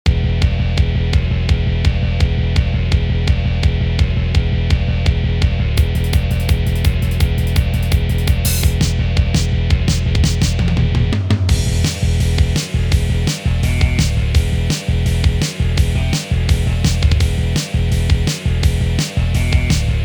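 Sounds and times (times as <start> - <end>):
RPG battle game music: 0.2 - 20.0.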